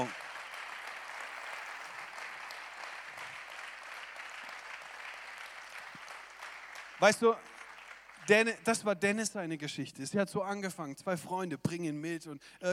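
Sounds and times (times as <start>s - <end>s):
audience applause: 0.0s - 8.6s
speech: 7.0s - 7.6s, 8.3s - 12.7s.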